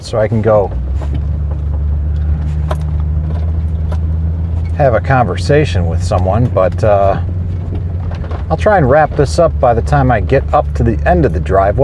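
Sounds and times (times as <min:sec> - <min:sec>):
car engine rumbling as a vehicle pulls into a driveway: 0:00.0 - 0:11.8
speech: 0:00.1 - 0:01.3, 0:04.8 - 0:07.3, 0:08.5 - 0:11.8.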